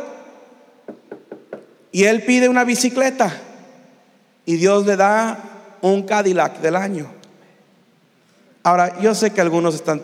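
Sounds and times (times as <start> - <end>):
knocking on a door: 0.9 - 1.8
speech: 1.9 - 3.5, 4.5 - 7.2, 8.6 - 10.0.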